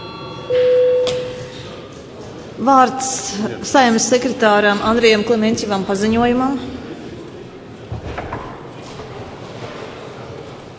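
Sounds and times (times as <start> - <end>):
parliament session bell electronic tone: 0.0 - 1.6
low murmur: 0.0 - 10.7
speech: 2.6 - 6.8.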